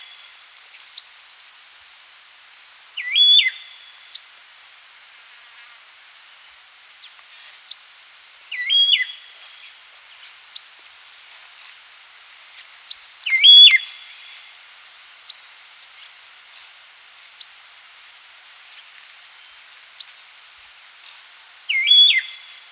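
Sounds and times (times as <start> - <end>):
starling whistles: 3.0 - 3.7, 8.5 - 9.2, 13.3 - 14.1, 21.7 - 22.7.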